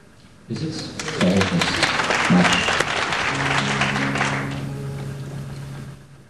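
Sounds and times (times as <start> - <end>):
speech: 0.5 - 1.3
audience clapping: 0.8 - 4.7.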